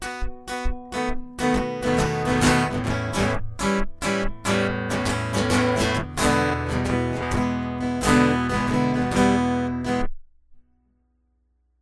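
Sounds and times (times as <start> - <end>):
guitar ditty: 1.4 - 10.1.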